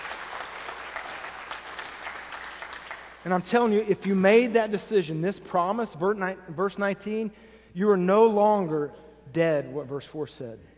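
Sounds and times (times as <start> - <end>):
audience applause: 0.0 - 3.3
speech: 3.2 - 10.7.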